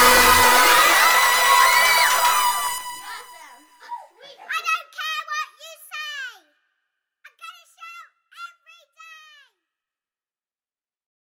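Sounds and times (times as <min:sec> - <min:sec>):
guitar: 0:00.0 - 0:03.6.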